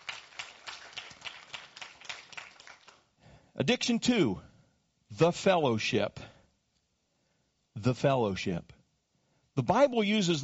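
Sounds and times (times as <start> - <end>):
audience clapping hands: 0.0 - 3.2
speech: 3.6 - 4.5, 5.2 - 6.3, 7.8 - 8.8, 9.6 - 10.4.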